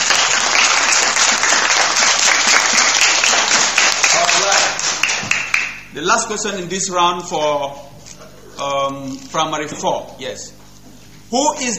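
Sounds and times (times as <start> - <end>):
audience applause: 0.0 - 5.8
speech: 6.0 - 8.0, 8.6 - 10.6, 11.3 - 11.7.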